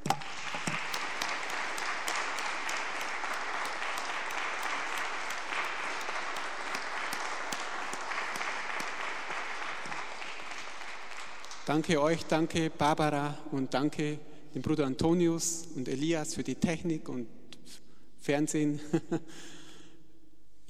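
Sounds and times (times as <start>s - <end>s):
audience applause after singing: 0.0s - 11.8s
speech: 11.7s - 19.6s.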